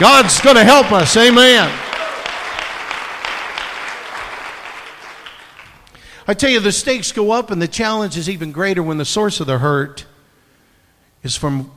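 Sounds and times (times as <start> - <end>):
speech: 0.0 - 1.8, 6.3 - 10.1, 11.2 - 11.7
audience clapping hands: 0.0 - 6.1.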